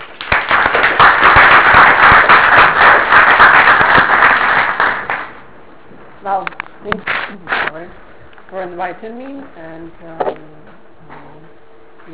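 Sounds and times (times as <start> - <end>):
audience applause welcoming the speaker: 0.0 - 5.4
speech: 7.8 - 10.5.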